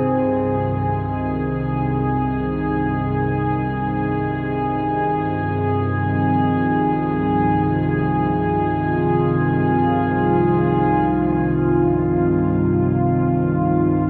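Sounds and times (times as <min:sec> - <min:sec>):
calm relaxing synth pad: 0:00.0 - 0:14.0.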